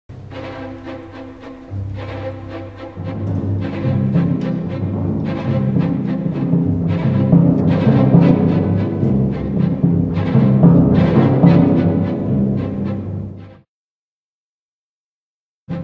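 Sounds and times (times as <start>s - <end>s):
symphonic timpani: 0.1s - 13.7s.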